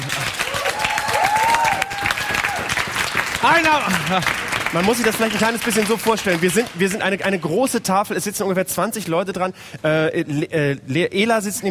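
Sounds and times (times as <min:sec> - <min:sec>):
audience applause: 0:00.0 - 0:07.5
speech: 0:03.4 - 0:11.6.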